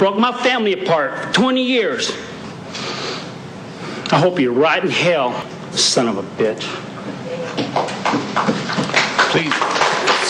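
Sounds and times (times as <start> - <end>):
speech: 0.0 - 2.8, 4.1 - 6.9, 9.3 - 9.7
courtroom audience applauding: 7.6 - 10.2.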